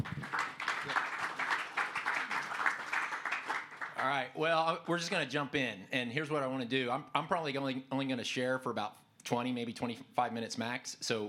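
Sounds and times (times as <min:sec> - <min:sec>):
applause from a church gathering welcoming a speaker: 0:00.0 - 0:04.2
speech: 0:04.0 - 0:11.2.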